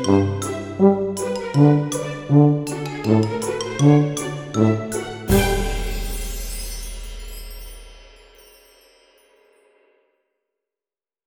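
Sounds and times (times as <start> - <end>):
fun comedy music: 0.0 - 6.8.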